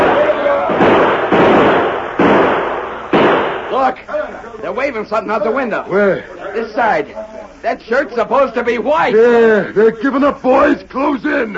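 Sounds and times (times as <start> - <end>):
gunfire volley: 0.0 - 3.9
speech: 3.8 - 11.5.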